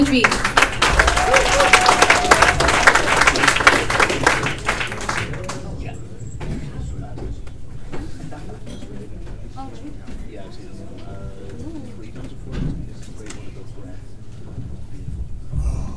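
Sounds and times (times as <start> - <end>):
audience applause for poet: 0.0 - 5.9
room murmur: 0.0 - 15.9.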